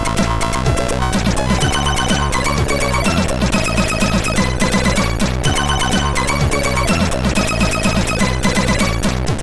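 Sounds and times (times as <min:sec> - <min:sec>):
chiptune menu music from a SID chip: 0:00.0 - 0:09.3.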